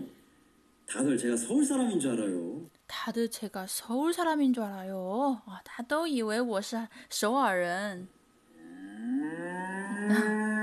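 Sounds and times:
speech: 0:00.9 - 0:08.2, 0:10.1 - 0:10.4
cow mooing: 0:08.6 - 0:10.6.

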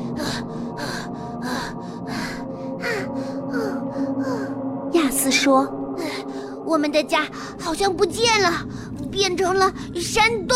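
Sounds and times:
person panting, out of breath: 0:00.0 - 0:04.5
speech: 0:05.4 - 0:05.9, 0:06.7 - 0:10.5.

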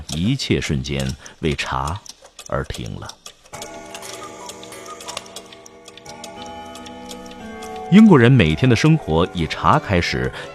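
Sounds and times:
clock ticking: 0:00.0 - 0:10.5
speech: 0:00.2 - 0:03.2, 0:07.9 - 0:10.5
clock chime striking: 0:03.5 - 0:10.5.

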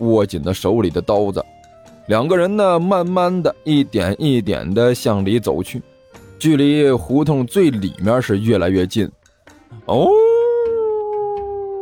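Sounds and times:
speech: 0:00.1 - 0:09.2, 0:09.9 - 0:10.3
eerie wolf-like howl: 0:09.9 - 0:11.7.

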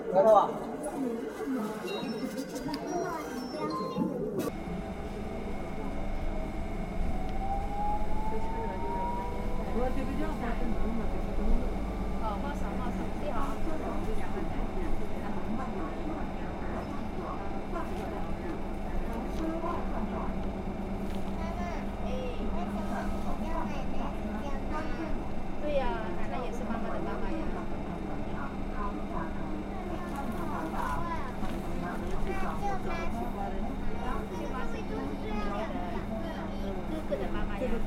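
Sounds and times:
speech: 0:00.1 - 0:04.0
riding a swaying city bus: 0:00.6 - 0:37.8.

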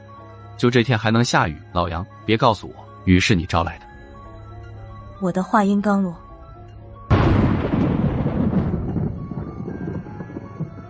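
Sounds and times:
speech: 0:00.6 - 0:03.8, 0:05.2 - 0:06.2
thunder crack: 0:07.1 - 0:10.8.

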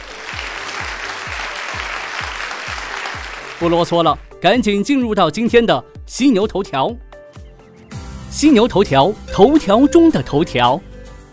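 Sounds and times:
applause: 0:00.0 - 0:03.8
speech: 0:03.6 - 0:07.1, 0:08.3 - 0:10.9.

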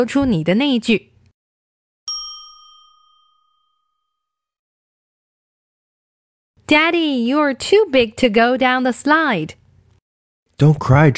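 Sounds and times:
speech: 0:00.0 - 0:01.1, 0:06.7 - 0:09.6, 0:10.6 - 0:11.1
ding chime: 0:02.1 - 0:04.6.

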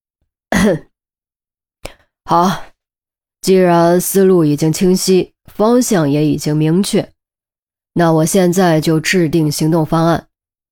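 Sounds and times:
throat clearing: 0:00.5 - 0:00.9
speech: 0:00.6 - 0:00.9, 0:02.3 - 0:02.7, 0:03.4 - 0:07.2, 0:08.0 - 0:10.3.

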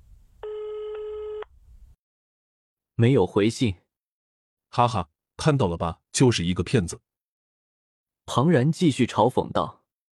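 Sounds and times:
telephone call ringing tone: 0:00.4 - 0:01.5
speech: 0:03.0 - 0:03.8, 0:04.7 - 0:07.1, 0:08.3 - 0:09.8.

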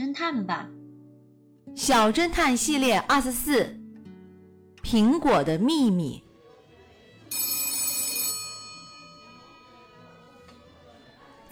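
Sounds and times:
speech: 0:00.2 - 0:00.8, 0:01.8 - 0:03.8, 0:04.8 - 0:06.2
telephone ringing: 0:07.3 - 0:10.2.

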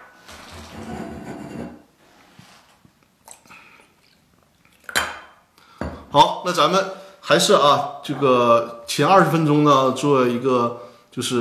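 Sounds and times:
person drinking water: 0:02.9 - 0:05.0
cup clinking: 0:04.9 - 0:06.0
speech: 0:06.1 - 0:11.3.

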